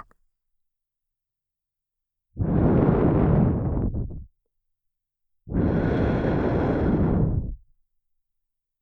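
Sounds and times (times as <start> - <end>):
blowing into the left ear: 2.4 - 4.3, 5.5 - 7.6.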